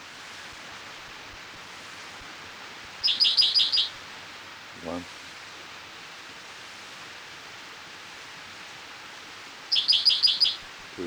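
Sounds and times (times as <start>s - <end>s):
faint steady hiss: 0.0s - 11.0s
spotted towhee song: 3.0s - 4.0s, 9.7s - 11.0s
speech: 4.8s - 5.2s.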